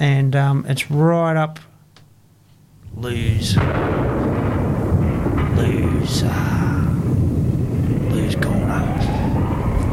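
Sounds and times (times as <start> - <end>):
speech: 0.0 - 1.7, 2.9 - 4.3, 5.6 - 6.8, 8.2 - 9.1
air raid explosions rumbling like thunder: 3.0 - 9.9.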